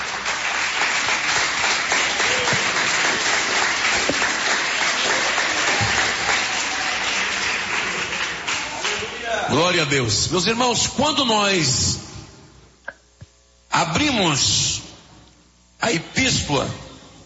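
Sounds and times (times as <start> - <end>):
audience clapping: 0.0 - 9.6
speech: 9.5 - 12.0, 13.9 - 14.7, 15.9 - 16.8.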